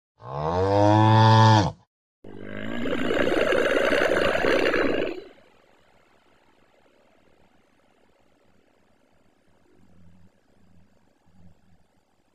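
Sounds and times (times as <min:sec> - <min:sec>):
kouprey mooing and bellowing: 0:00.2 - 0:05.1.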